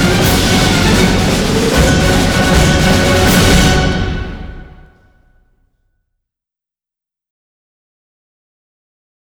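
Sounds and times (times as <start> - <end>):
orchestra playing: 0.0 - 5.2.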